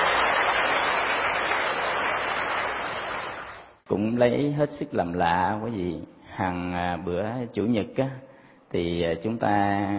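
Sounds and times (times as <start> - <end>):
audience applause: 0.0 - 3.7
speech: 3.9 - 9.9.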